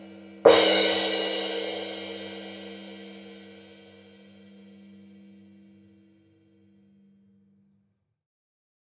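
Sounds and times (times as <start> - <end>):
Paiste PST8 hard crash cymbal hit with soft stick: 0.0 - 5.0.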